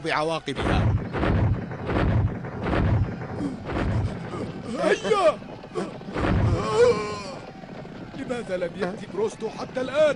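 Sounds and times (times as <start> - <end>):
speech: 0.0 - 2.1, 4.7 - 7.1, 8.2 - 10.1
cannon firing: 0.6 - 4.3, 6.1 - 6.6.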